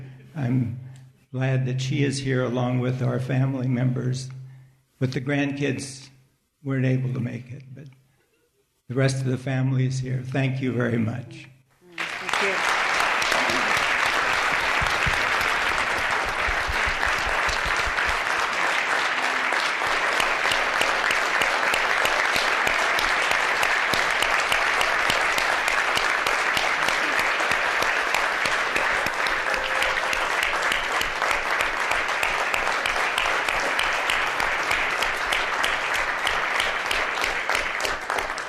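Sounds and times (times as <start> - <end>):
speech: 0.4 - 4.4, 5.0 - 8.0, 8.9 - 11.5
audience applause: 12.0 - 38.4.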